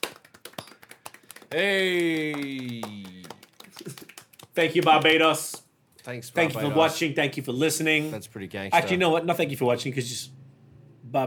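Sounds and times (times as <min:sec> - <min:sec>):
hand clapping: 0:00.0 - 0:05.7
speech: 0:01.5 - 0:02.8, 0:04.6 - 0:10.4.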